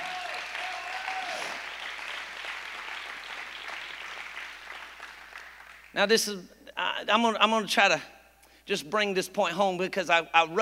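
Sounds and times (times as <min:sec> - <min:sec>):
audience hand clapping: 0:00.0 - 0:06.0
speech: 0:06.0 - 0:08.1, 0:08.7 - 0:10.6.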